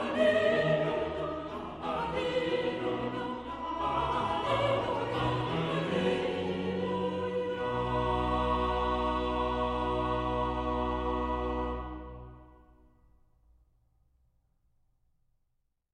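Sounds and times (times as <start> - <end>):
choral hymn singing: 0.0 - 12.6.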